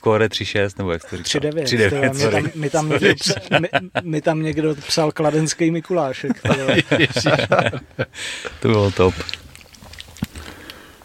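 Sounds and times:
speech: 0:00.0 - 0:09.4
laughter: 0:01.0 - 0:09.2
lip smacking while eating: 0:08.4 - 0:11.0.

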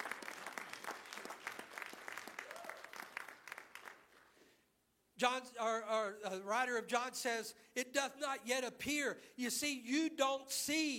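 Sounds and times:
congregation clapping in praise during a church service: 0:00.0 - 0:04.4
speech: 0:05.2 - 0:10.9.

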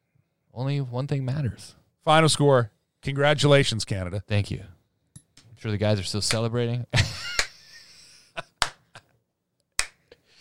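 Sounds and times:
speech: 0:00.6 - 0:04.8, 0:05.6 - 0:07.1
slow hand clapping: 0:07.2 - 0:07.6, 0:08.6 - 0:09.0, 0:09.8 - 0:10.0.

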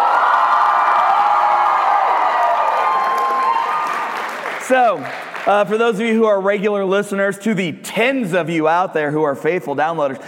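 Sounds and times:
live audience cheering and whooping at a summer camp in Salina Kansas: 0:00.0 - 0:04.6
speech: 0:04.7 - 0:10.2.

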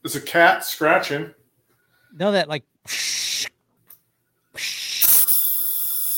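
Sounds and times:
speech: 0:00.0 - 0:01.4, 0:02.1 - 0:03.3, 0:04.6 - 0:04.8
supplemental oxygen flowing with a hiss: 0:04.6 - 0:06.1.

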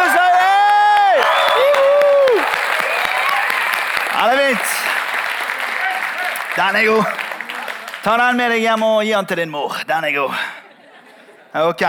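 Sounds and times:
polite golf applause: 0:00.0 - 0:09.0
speech: 0:06.6 - 0:07.2, 0:08.0 - 0:10.6, 0:11.5 - 0:11.8.

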